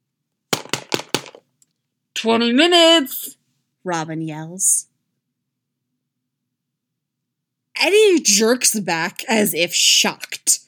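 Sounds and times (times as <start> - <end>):
loud knock on a door: 0.5 - 1.4
speech: 2.2 - 4.9, 7.8 - 10.6.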